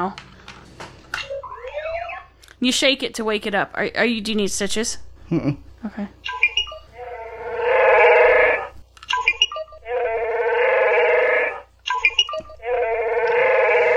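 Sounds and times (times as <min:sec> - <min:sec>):
speech: 0:00.0 - 0:00.3, 0:02.6 - 0:06.4
clicky electronic chirps: 0:01.3 - 0:02.3, 0:06.2 - 0:07.0, 0:09.1 - 0:10.5, 0:11.9 - 0:12.6
electronic toy creature roar: 0:07.0 - 0:08.8, 0:09.9 - 0:11.7, 0:12.6 - 0:13.9.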